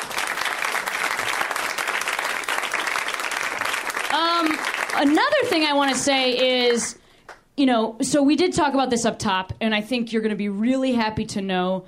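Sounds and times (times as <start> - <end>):
audience applause for comedian Rhea Butcher: 0.0 - 6.9
speech: 4.1 - 7.0, 7.6 - 11.8.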